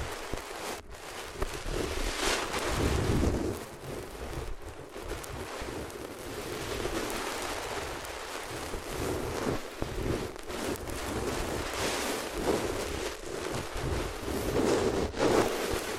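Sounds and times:
rubbing against the ears with different materials: 0.0 - 15.9.

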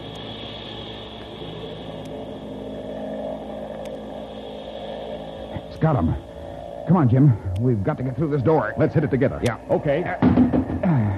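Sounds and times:
airplane engine roaring as plane dives: 0.0 - 11.1
speech: 5.8 - 6.3, 6.9 - 11.0.

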